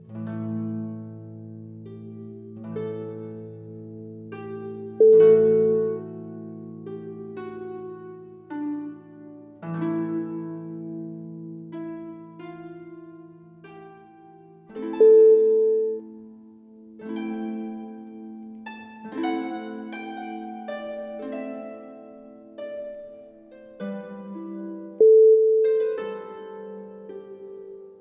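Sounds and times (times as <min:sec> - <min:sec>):
harp nocturne: 0:00.0 - 0:27.9.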